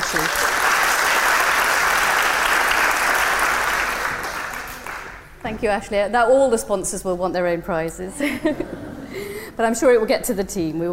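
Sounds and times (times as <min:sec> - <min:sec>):
audience applause at awards ceremony: 0:00.0 - 0:05.3
speech: 0:05.4 - 0:08.8, 0:09.6 - 0:10.9.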